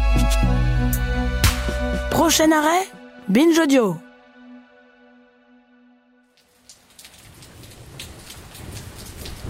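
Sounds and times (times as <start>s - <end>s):
sustained musical tone: 0.1s - 6.3s
speech: 2.3s - 4.1s
cold heavy rain in the streets of Bruges heard through an umbrella: 6.3s - 9.4s.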